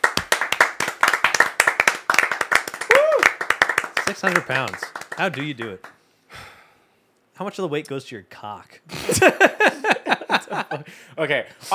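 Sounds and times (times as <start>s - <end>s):
people clapping: 0.0s - 6.0s
speech: 4.1s - 5.9s, 7.4s - 11.7s
laughter: 8.9s - 11.0s.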